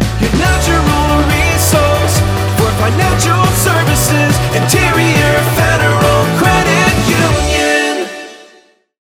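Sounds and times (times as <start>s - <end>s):
jingle: 0.2s - 8.4s.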